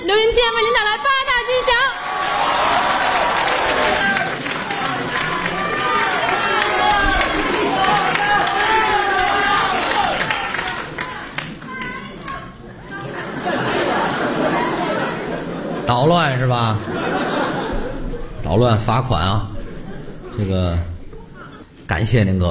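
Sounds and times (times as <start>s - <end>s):
shouts and chatter: 0.0s - 15.8s
theater audience at a live crosstalk performance clapping and cheering: 0.8s - 15.6s
laughter: 3.8s - 11.2s, 11.9s - 21.8s
speech: 16.0s - 17.0s, 18.5s - 19.5s, 20.4s - 20.9s, 21.9s - 22.4s.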